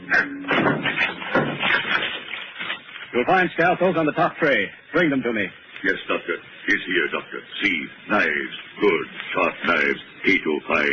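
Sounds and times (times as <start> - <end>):
tall white locked cabinet being smashed open: 0.5 - 2.8
speech: 3.2 - 10.9.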